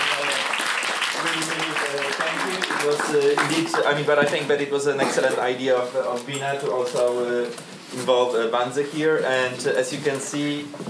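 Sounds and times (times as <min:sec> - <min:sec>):
audience applause: 0:00.0 - 0:04.0
speech: 0:02.3 - 0:10.8.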